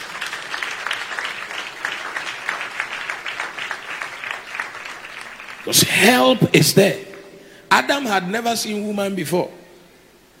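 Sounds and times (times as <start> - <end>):
audience clapping: 0.0 - 7.3
speech: 5.7 - 7.1, 7.7 - 9.6.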